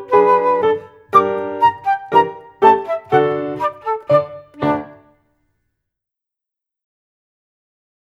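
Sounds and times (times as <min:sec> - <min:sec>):
instrumental piece: 0:00.0 - 0:05.1.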